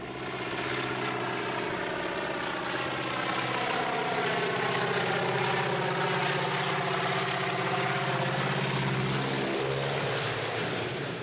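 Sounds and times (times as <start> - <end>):
propeller engine drone of a low-flying aeroplane: 0.0 - 11.2.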